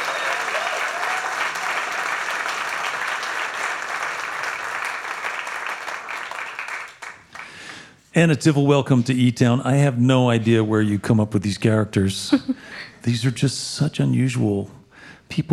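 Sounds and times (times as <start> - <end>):
audience applause for a band: 0.0 - 7.7
speech: 8.2 - 15.5.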